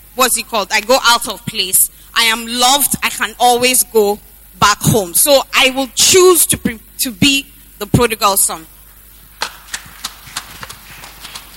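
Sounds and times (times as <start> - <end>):
speech: 0.2 - 8.7
sparse half-hearted clapping from the audience: 9.4 - 11.5.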